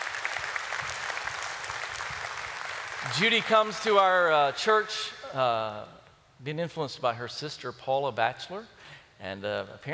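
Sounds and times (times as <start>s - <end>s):
audience applause: 0.0s - 4.4s
speech: 3.0s - 9.9s.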